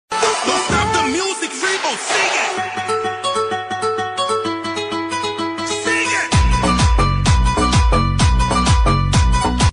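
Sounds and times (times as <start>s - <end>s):
trending music: 0.1s - 9.7s.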